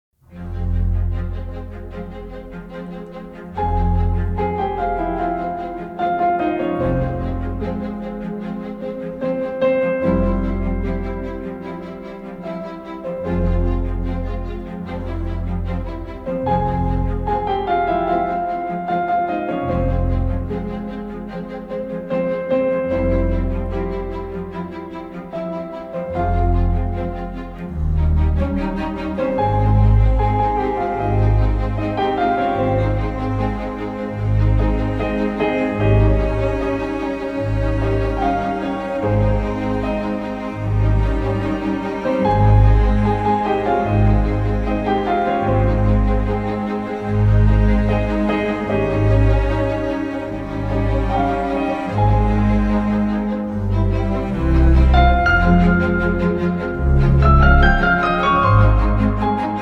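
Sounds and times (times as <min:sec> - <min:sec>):
rondo for piano and orchestra: 0:00.2 - 0:59.5.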